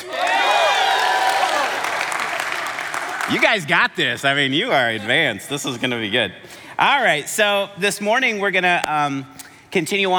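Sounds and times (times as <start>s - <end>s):
crowd clapping: 0.0s - 3.7s
speech: 3.3s - 10.1s.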